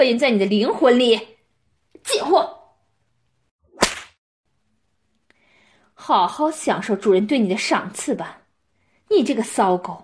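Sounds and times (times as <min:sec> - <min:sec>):
speech: 0:00.0 - 0:01.3, 0:02.0 - 0:02.6, 0:06.0 - 0:08.4, 0:09.1 - 0:10.0
whip crack: 0:03.7 - 0:04.2.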